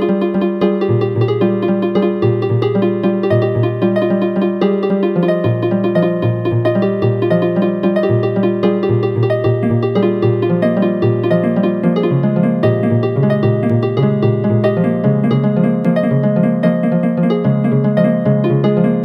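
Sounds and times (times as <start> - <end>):
cellular automaton harp: 0.0 - 19.0.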